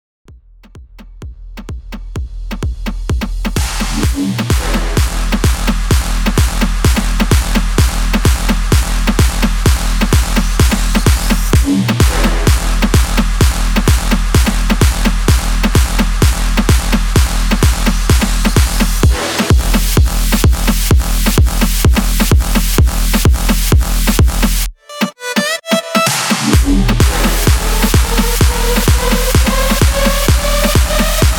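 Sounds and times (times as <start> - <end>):
big room dance music at 128 BPM: 0.3 - 31.3.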